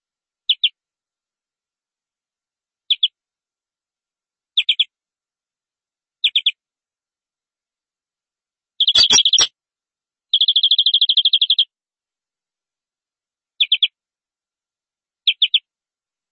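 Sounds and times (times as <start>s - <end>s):
canary chirps: 0.5s - 0.8s, 4.6s - 4.9s, 6.2s - 6.6s, 8.8s - 9.5s, 10.3s - 11.7s, 13.6s - 14.0s, 15.2s - 15.7s.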